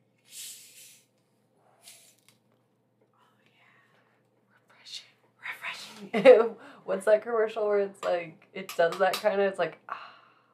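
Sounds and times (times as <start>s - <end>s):
drink being cracked open: 0.2s - 1.1s, 1.8s - 2.2s
speech: 6.0s - 10.0s.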